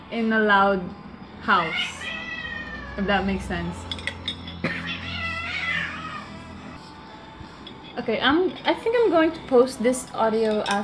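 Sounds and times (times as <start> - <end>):
speech: 0.1 - 2.1, 3.0 - 4.0, 8.0 - 10.8
cats yowling loudly in a house: 1.5 - 3.8, 4.7 - 6.8.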